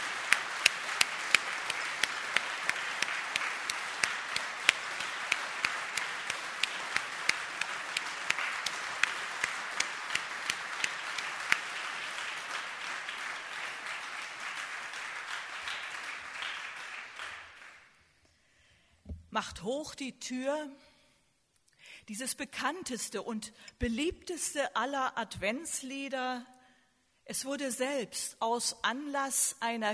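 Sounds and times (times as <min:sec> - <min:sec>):
audience applause: 0:00.0 - 0:17.9
speech: 0:19.4 - 0:20.8, 0:22.1 - 0:26.6, 0:27.3 - 0:29.9.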